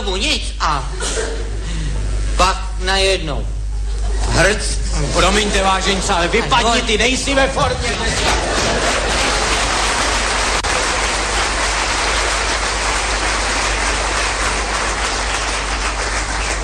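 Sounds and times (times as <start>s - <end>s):
speech: 0.1s - 1.6s, 2.4s - 3.6s, 4.4s - 9.1s
laughter: 0.8s - 2.3s, 3.7s - 16.6s
audience applause: 7.6s - 16.6s.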